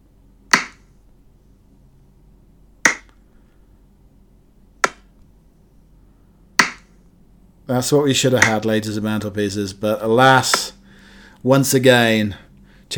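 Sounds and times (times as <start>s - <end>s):
faint hum: 0.0s - 12.9s
dart throwing sound effects: 0.5s - 0.9s, 2.8s - 3.2s, 4.8s - 5.1s, 6.6s - 7.0s, 8.4s - 8.6s, 10.5s - 10.7s
speech: 7.7s - 10.8s, 11.4s - 12.9s.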